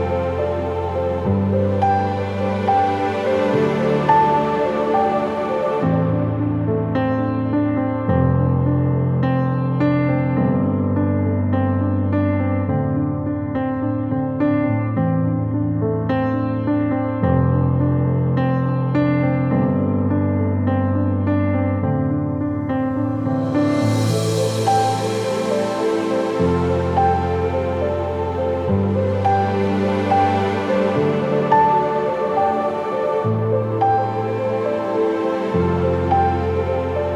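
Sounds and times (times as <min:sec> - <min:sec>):
ambient piano: 0:00.0 - 0:37.1.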